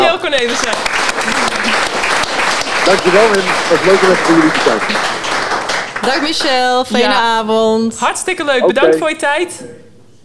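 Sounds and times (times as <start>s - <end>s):
applause: 0.0s - 7.0s
speech: 0.4s - 1.0s, 2.9s - 5.2s, 6.0s - 9.8s.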